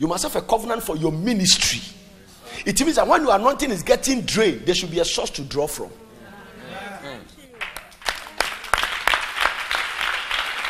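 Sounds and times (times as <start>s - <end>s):
speech: 0.0s - 2.0s, 2.6s - 6.0s
church audience clapping during a sermon: 7.6s - 10.6s.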